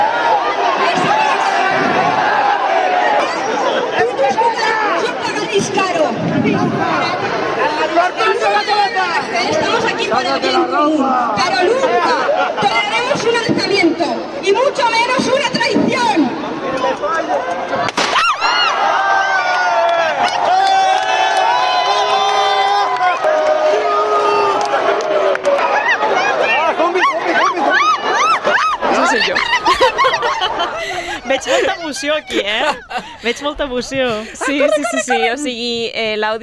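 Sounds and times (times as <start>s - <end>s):
group of people shouting and cheering: 0.0s - 10.6s, 16.7s - 33.4s
people chattering: 0.0s - 17.9s, 25.7s - 36.4s
speech: 10.1s - 15.5s, 31.3s - 36.4s
people laughing: 25.8s - 35.8s.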